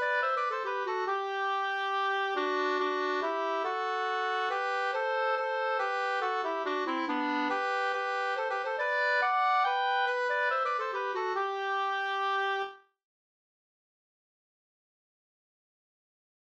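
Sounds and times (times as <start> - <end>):
minuet: 0.0 - 12.8.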